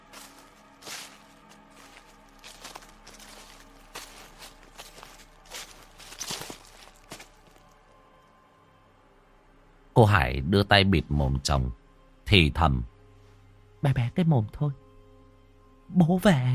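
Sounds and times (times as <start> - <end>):
footsteps crunching on dry leaves: 0.0 - 7.8
speech: 10.0 - 12.9, 13.8 - 14.8, 15.9 - 16.5.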